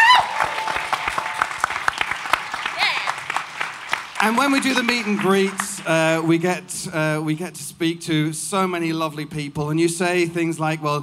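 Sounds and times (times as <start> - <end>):
audience applause: 0.0 - 6.3
speech: 4.2 - 11.0.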